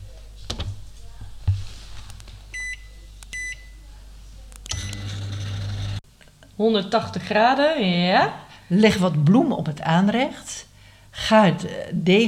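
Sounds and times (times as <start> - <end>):
low steady hum: 0.0 - 12.2
oven beeping as it is set to preheat to 180 degrees: 2.5 - 3.8, 4.7 - 6.0
speech: 6.6 - 12.2.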